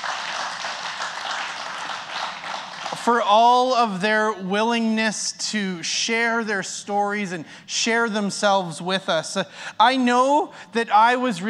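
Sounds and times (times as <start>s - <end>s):
congregation clapping at a church service: 0.0s - 3.2s
speech: 3.0s - 11.4s.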